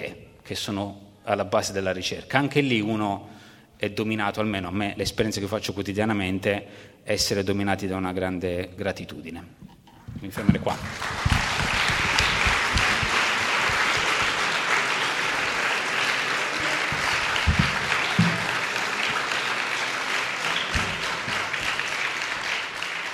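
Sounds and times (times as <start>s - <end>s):
speech: 0.1s - 11.4s
audience applause: 10.6s - 23.1s.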